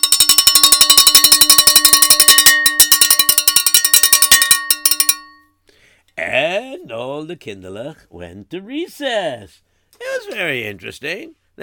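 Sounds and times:
school recess bell ringing: 0.0s - 5.5s
speech: 6.9s - 11.6s.

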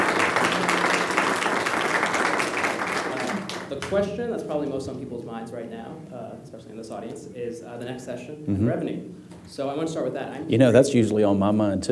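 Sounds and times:
audience applause welcoming Comptroller Glen Hegar: 0.0s - 4.2s
speech: 3.8s - 11.9s.

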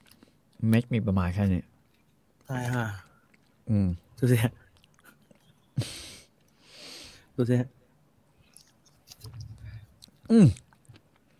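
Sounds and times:
mangosteen fruit being chewed: 0.0s - 6.6s, 8.4s - 11.3s
speech: 0.6s - 1.7s, 2.5s - 3.1s, 3.7s - 4.6s, 7.4s - 7.8s, 10.3s - 10.6s.

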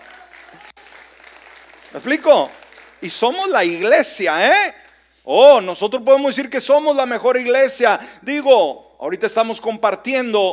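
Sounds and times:
audience applause: 0.0s - 3.5s
speech: 1.9s - 10.5s.

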